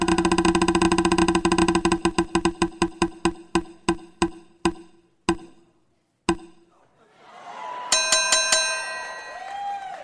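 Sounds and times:
prize wheel spinning with rapid clicks: 0.0s - 5.5s
bright ringing chime: 7.9s - 9.5s.

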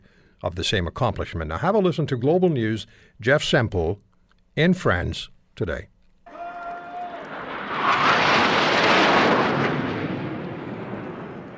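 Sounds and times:
speech: 0.4s - 5.9s
military jets roaring overhead: 7.0s - 11.5s.

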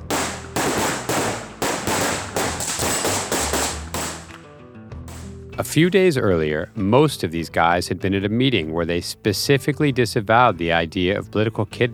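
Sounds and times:
gunshots during a tactical training run in a kill house: 0.0s - 4.5s, 5.1s - 5.3s
speech: 5.6s - 11.9s.

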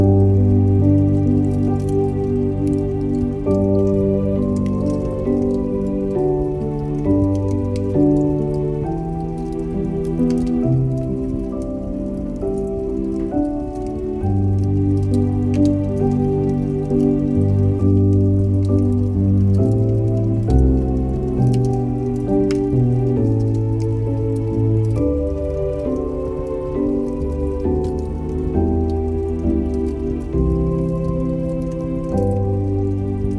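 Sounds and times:
fireplace crackling: 0.0s - 33.3s
soft mellow music: 0.0s - 33.3s.

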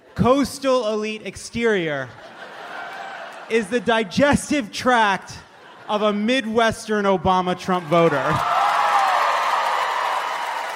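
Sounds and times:
speech: 0.2s - 2.3s, 3.5s - 8.5s
laughter: 2.0s - 4.5s, 5.2s - 6.6s
audience applause: 8.0s - 10.7s.

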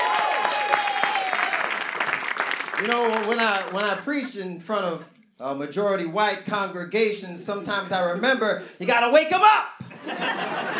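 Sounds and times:
audience hand clapping: 0.0s - 4.4s
speech: 2.8s - 10.7s
laughter: 9.9s - 10.7s.

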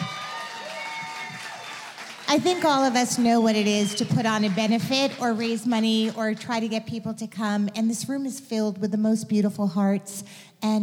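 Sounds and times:
crowd cheering and voices: 0.0s - 5.2s
audience clapping: 0.0s - 6.7s
speech: 2.3s - 10.8s.

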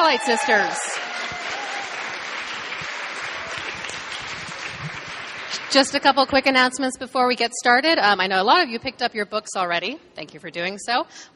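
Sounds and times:
audience applause at Powerhouse Arena: 0.0s - 6.0s
speech: 0.1s - 1.1s, 5.7s - 11.3s.

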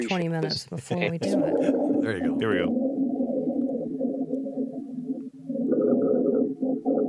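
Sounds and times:
speech: 0.0s - 2.9s
coarse low-pitched rhonchi lung sounds: 1.3s - 6.4s.

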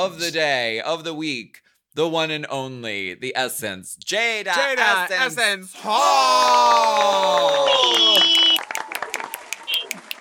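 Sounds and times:
speech: 0.0s - 8.5s
live studio audience cheering with whoops: 5.9s - 10.1s
live studio audience clapping: 6.7s - 10.1s.

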